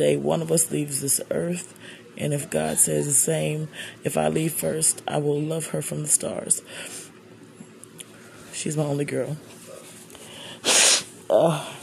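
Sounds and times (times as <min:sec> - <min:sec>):
speech: 0:00.0 - 0:07.0, 0:08.6 - 0:09.6, 0:11.3 - 0:11.8
person sniffling: 0:10.2 - 0:11.1.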